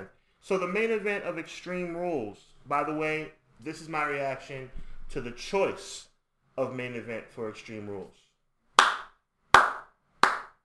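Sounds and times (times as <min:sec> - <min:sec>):
speech: 0:00.0 - 0:08.2
single pair of hands clapping: 0:08.8 - 0:10.6.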